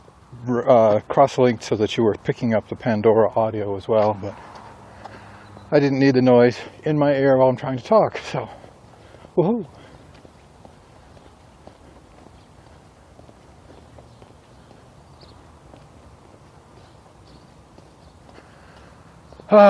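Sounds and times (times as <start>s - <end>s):
speech: 0.4s - 4.5s, 5.7s - 8.6s, 9.4s - 9.8s
footsteps of a person walking: 4.0s - 5.8s, 7.9s - 19.5s.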